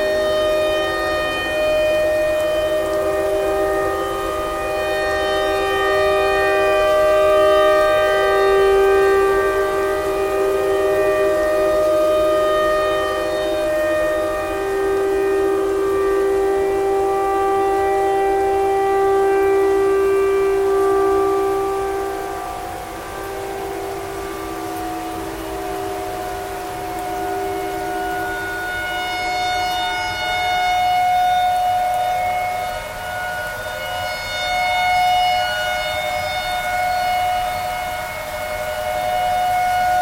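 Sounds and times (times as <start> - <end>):
tornado siren: 0.0 - 39.9.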